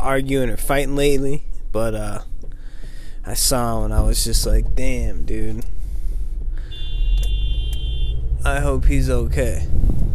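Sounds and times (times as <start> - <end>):
speech: 0.0 - 2.3, 3.2 - 5.8, 8.4 - 10.0
car horn honking: 6.6 - 8.4.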